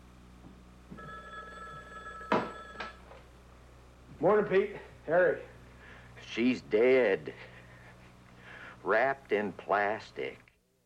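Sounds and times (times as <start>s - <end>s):
telephone ringing after call transfer: 0.9s - 3.2s
speech: 4.2s - 5.5s, 6.3s - 7.5s, 8.8s - 10.4s.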